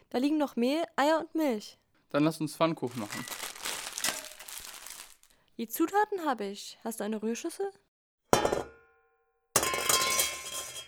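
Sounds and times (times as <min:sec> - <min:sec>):
speech: 0:00.1 - 0:03.4, 0:05.6 - 0:08.7
metal frying pan crashing onto a hard floor: 0:08.4 - 0:09.0, 0:09.6 - 0:10.8.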